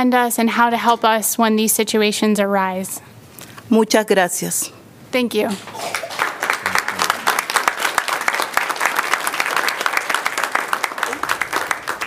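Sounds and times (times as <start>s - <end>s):
speech: 0.0s - 6.1s
audience applause: 5.9s - 12.0s.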